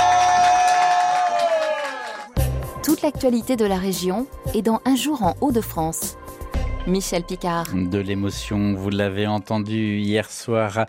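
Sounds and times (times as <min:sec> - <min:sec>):
audience applause: 0:00.0 - 0:02.4
speech: 0:03.0 - 0:06.2, 0:06.8 - 0:10.8.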